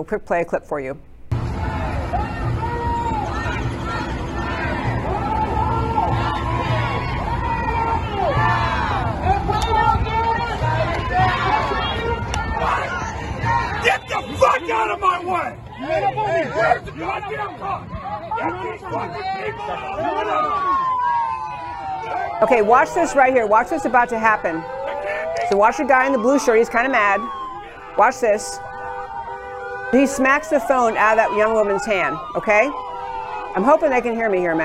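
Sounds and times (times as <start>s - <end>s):
speech: 0.0s - 1.1s, 14.6s - 20.9s, 22.0s - 24.8s, 25.5s - 27.4s, 28.0s - 28.7s, 29.9s - 32.9s, 33.5s - 34.6s
low rumble: 1.2s - 10.2s
crowd of protesters shouting and yelling at blocked intersection: 1.3s - 34.6s.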